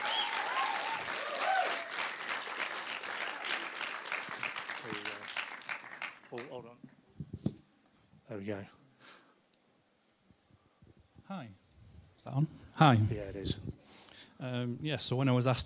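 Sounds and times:
audience clapping and cheering: 0.0 - 6.6
speech: 6.3 - 6.9, 8.3 - 8.8, 11.3 - 11.6, 12.2 - 13.8, 14.4 - 15.6.

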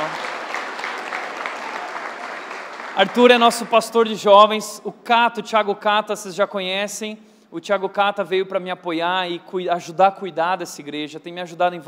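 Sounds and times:
church audience applause: 0.0 - 3.7
speech: 3.0 - 11.8.

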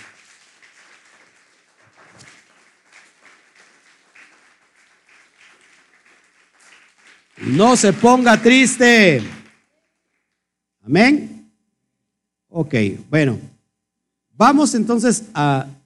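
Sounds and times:
audience applauding: 0.0 - 9.8
speech: 7.4 - 9.4, 10.9 - 11.3, 12.6 - 13.5, 14.4 - 15.8.

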